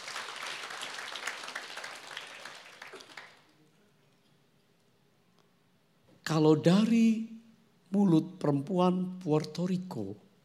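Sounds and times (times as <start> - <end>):
audience applauding: 0.0 - 3.5
speech: 6.3 - 7.3, 7.9 - 10.2.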